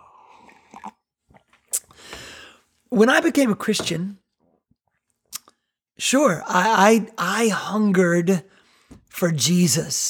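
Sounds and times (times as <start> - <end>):
person sipping coffee: 0.0 - 2.6
swallow and breath: 0.0 - 2.7
cup sounds: 0.2 - 2.3
speech: 2.9 - 4.2, 6.0 - 8.5, 9.1 - 10.0.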